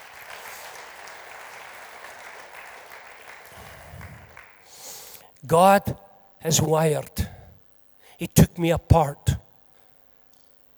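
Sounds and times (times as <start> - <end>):
audience applause: 0.0 - 4.6
speech: 5.4 - 7.2, 8.2 - 9.4.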